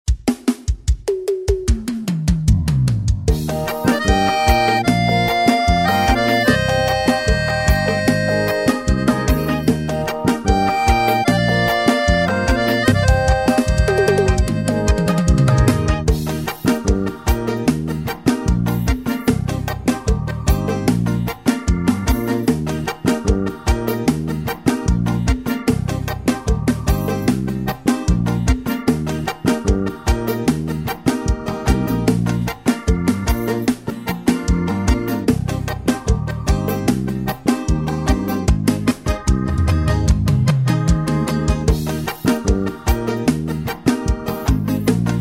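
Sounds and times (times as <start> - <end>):
forro backing track: 0.1 - 45.2.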